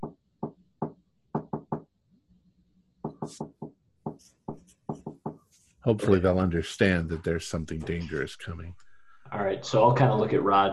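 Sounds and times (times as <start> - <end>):
knuckles knocking an SOS on the wooden wall behind a barn: 0.0 - 1.9, 3.0 - 5.4
speech: 3.3 - 3.6, 5.8 - 8.8, 9.5 - 10.7.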